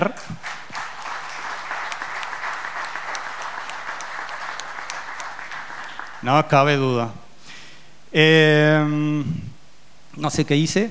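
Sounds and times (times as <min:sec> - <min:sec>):
speech: 0:00.0 - 0:00.3, 0:06.2 - 0:07.2, 0:08.1 - 0:09.5, 0:10.2 - 0:10.8
crowd applauding: 0:00.0 - 0:06.7.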